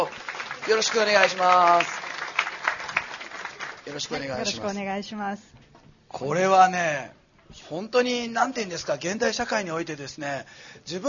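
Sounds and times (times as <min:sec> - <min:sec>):
audience applause: 0:00.0 - 0:04.5
speech: 0:00.7 - 0:02.0, 0:03.9 - 0:05.6, 0:06.2 - 0:11.0.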